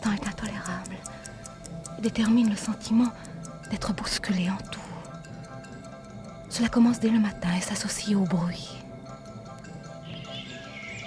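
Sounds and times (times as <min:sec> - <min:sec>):
speech: 0:02.0 - 0:04.8, 0:06.6 - 0:08.8
bird chirping: 0:09.8 - 0:11.0.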